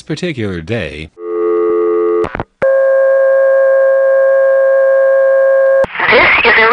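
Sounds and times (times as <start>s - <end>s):
speech: 0.1s - 1.2s, 6.4s - 6.7s
telephone off-hook warning tone: 1.2s - 5.8s.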